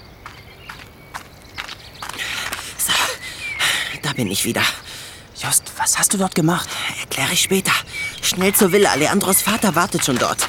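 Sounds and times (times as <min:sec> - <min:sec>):
soft hiss: 0:00.0 - 0:10.4
boy's footsteps running on a hard surface: 0:00.2 - 0:02.8, 0:08.0 - 0:10.4
speech: 0:04.1 - 0:10.4.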